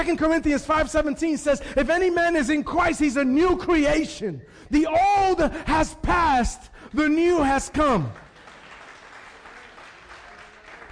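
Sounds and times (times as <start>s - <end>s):
speech: 0.0s - 8.2s
audience clapping: 7.9s - 10.9s.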